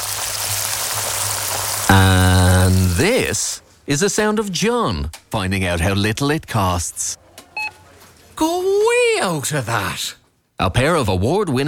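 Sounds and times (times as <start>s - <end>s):
pair of 32-day matured sirloin steaks sizzling in pure Irish butter: 0.0s - 3.4s
speech: 1.9s - 7.2s, 8.4s - 11.6s.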